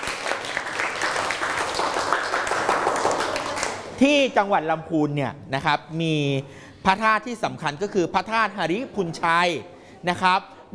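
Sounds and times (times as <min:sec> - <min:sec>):
applause: 0:00.0 - 0:03.9
speech: 0:04.0 - 0:10.7.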